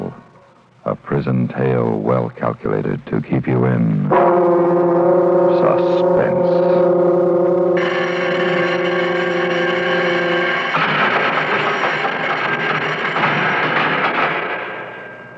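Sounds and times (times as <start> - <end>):
speech: 0.8 - 6.8
loud prison bell ringing: 4.1 - 15.3.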